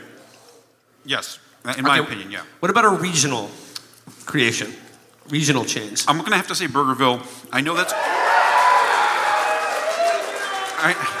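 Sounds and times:
speech: 1.0s - 3.6s, 4.3s - 8.1s, 10.8s - 11.1s
live audience applause: 7.8s - 11.1s.

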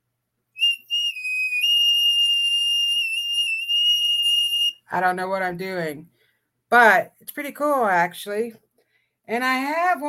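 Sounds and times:
small flute playing high shrill notes: 0.6s - 4.8s
speech: 4.9s - 8.6s, 9.3s - 10.0s.

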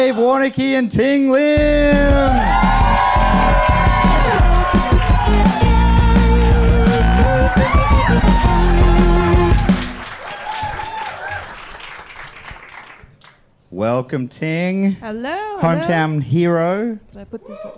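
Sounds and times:
speech: 0.1s - 3.0s, 13.8s - 17.7s
studio audience cheering for guests at a comedy panel game show: 1.6s - 12.3s
studio audience applauding at a comedy panel game show: 1.7s - 13.4s.

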